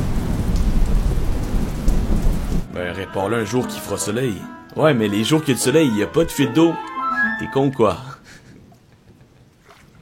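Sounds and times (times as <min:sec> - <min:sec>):
steady heavy rain falling outside: 0:00.0 - 0:02.8
speech: 0:02.9 - 0:08.1.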